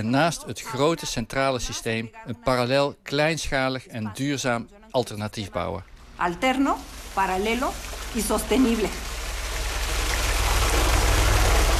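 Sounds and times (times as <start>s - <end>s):
speech: 0.0s - 9.1s
water from a tanker truck pouring into large water barrels in Ecatepec, Mexico: 5.5s - 11.7s.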